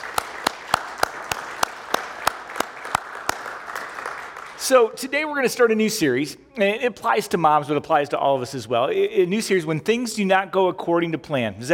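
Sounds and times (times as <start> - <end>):
audience applause: 0.0 - 4.7
speech: 4.6 - 11.7.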